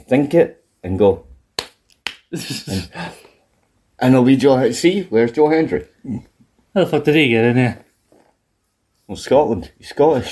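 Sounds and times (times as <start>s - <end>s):
speech: 0.1s - 1.3s, 2.3s - 3.3s, 4.0s - 7.8s, 9.1s - 10.3s
clapping: 1.6s - 2.3s.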